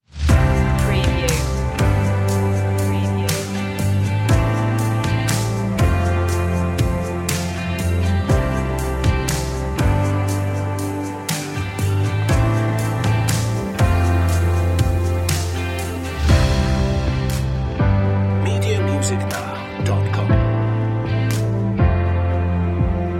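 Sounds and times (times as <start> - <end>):
pop ballad: 0.1 - 23.1.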